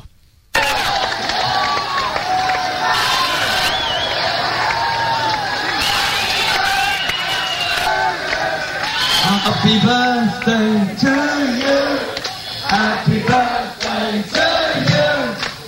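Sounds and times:
concert crowd in Brixton, England cheering for a musician's birthday: 0.5s - 15.6s
high whoops: 0.6s - 10.1s
speech: 9.6s - 11.7s.

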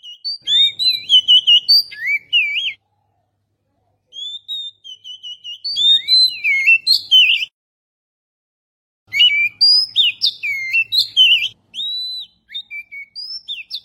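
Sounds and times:
Oriental magpie-robin song of varied whistles and chattering notes: 0.0s - 2.8s, 4.1s - 7.5s, 9.1s - 13.8s.

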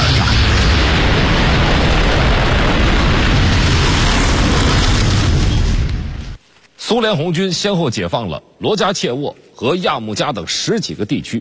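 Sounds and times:
Japanese aircraft bombing explosions: 0.0s - 6.4s
speech: 6.9s - 11.4s.

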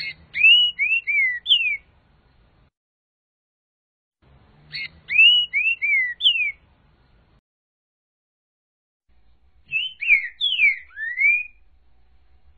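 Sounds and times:
green-winged saltator singing slurred falling whistles: 0.0s - 1.8s, 4.7s - 6.6s, 9.7s - 11.6s.

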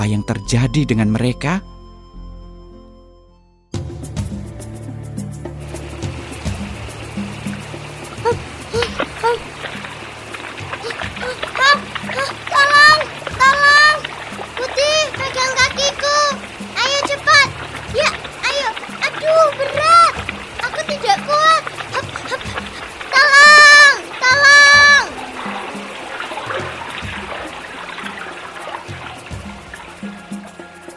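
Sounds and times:
speech: 0.0s - 1.7s
river flowing: 5.4s - 30.9s.

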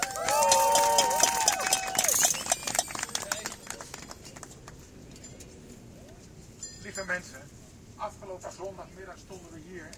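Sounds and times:
crowd applause: 0.0s - 4.2s
speech: 7.0s - 9.9s.

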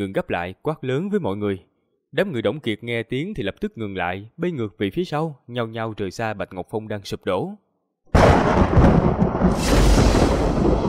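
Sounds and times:
speech: 0.0s - 7.6s, 8.2s - 10.1s
heavy rumbling thunder boom: 8.2s - 10.8s.

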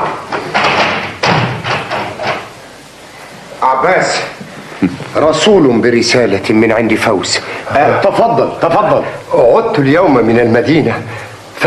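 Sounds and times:
knocking on a wooden door: 0.5s - 2.4s
speech: 3.8s - 11.6s.

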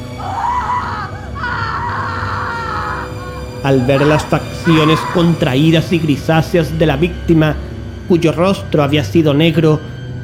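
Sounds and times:
man screaming in terror: 0.2s - 5.6s
speech: 3.6s - 9.9s.

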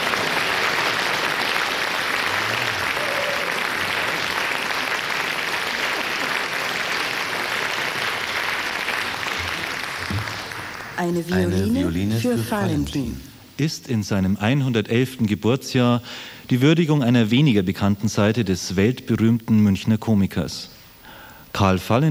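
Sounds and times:
live studio audience applauding in Studio 2 of Bayerischer Rundfunk: 0.0s - 12.0s
speech: 11.0s - 20.8s, 21.6s - 22.0s.

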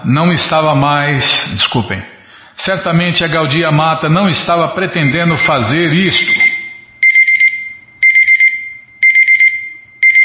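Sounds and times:
speech: 0.0s - 6.5s
alarm clock electronic beeping: 5.0s - 10.2s.

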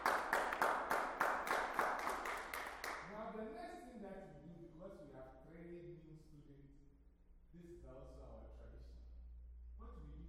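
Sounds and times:
group clapping for themselves: 0.0s - 3.2s.

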